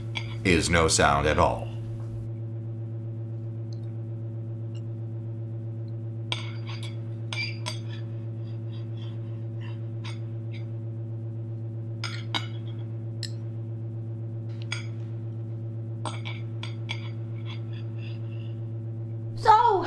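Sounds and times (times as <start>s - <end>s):
serrated sporks clinking against ceramic plates: 0.0s - 0.5s
low mechanical hum: 0.0s - 19.8s
speech: 0.4s - 1.7s.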